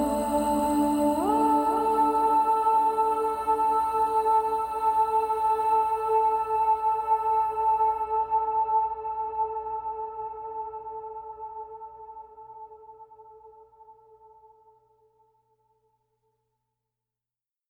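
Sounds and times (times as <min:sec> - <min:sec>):
person singing: 0:00.0 - 0:12.1.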